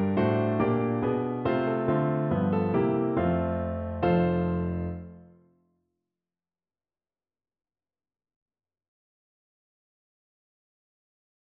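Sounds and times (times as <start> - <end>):
ragtime piano: 0.0 - 5.1.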